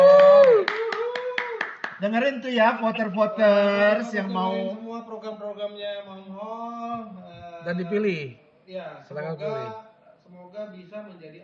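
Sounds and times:
crowd clapping: 0.0s - 3.0s
speech: 2.0s - 11.4s.

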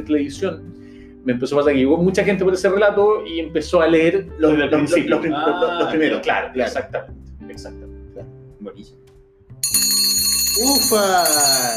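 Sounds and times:
speech: 0.0s - 7.9s, 8.6s - 9.0s, 9.6s - 11.7s
bell ringing to start question segment: 9.6s - 11.7s.

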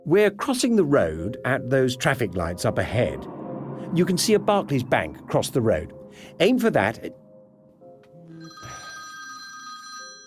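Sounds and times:
speech: 0.1s - 7.2s
mobile phone ringtone: 8.4s - 10.2s.

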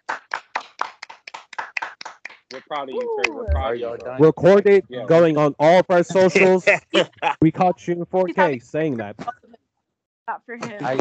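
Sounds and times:
group clapping: 0.0s - 4.8s, 5.9s - 7.1s, 8.2s - 8.6s, 10.6s - 11.0s
speech: 2.5s - 9.4s, 10.3s - 11.0s
laughter: 2.6s - 9.3s, 10.6s - 11.0s.

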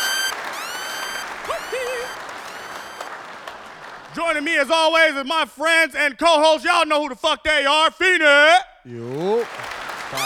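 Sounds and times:
clapping: 0.2s - 4.2s, 9.0s - 10.2s
speech: 4.2s - 9.6s.

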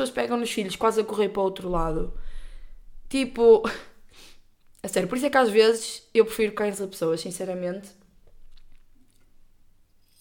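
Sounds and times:
speech: 0.0s - 2.3s, 3.1s - 8.0s
person sipping and swallowing water: 8.3s - 9.4s.

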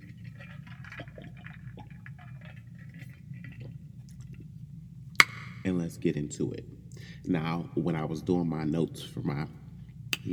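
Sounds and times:
person sipping water: 0.0s - 5.0s
speech: 5.6s - 9.6s.

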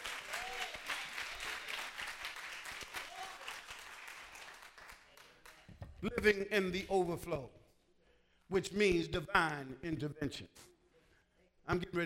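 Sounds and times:
audience clapping hands: 0.0s - 5.7s
speech: 6.0s - 7.6s, 8.5s - 10.7s, 11.7s - 12.0s.

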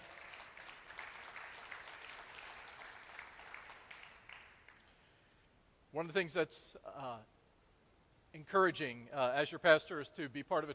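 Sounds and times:
audience clapping: 0.0s - 5.0s
speech: 6.0s - 7.4s, 8.3s - 10.7s.

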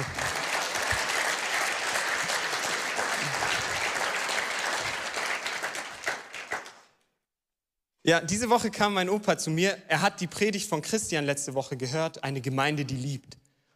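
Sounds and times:
audience applause: 0.0s - 6.9s
speech: 8.0s - 13.4s.

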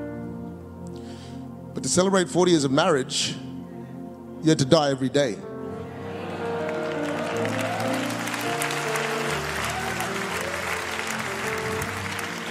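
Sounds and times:
speech: 1.8s - 3.5s, 4.4s - 5.5s
audience clapping: 6.2s - 12.5s.

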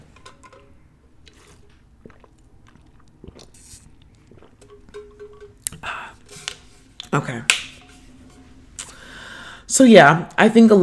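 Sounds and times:
person drinking water: 1.2s - 7.1s, 8.7s - 9.6s
speech: 9.8s - 10.8s.

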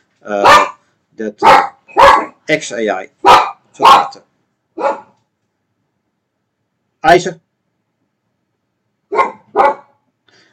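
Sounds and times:
speech: 0.2s - 0.6s, 1.2s - 1.7s, 2.5s - 3.2s, 3.8s - 5.0s, 7.0s - 7.4s
dog barking at hotel room door: 0.4s - 0.8s, 1.4s - 2.4s, 3.2s - 4.2s, 4.8s - 5.2s, 9.1s - 10.0s.

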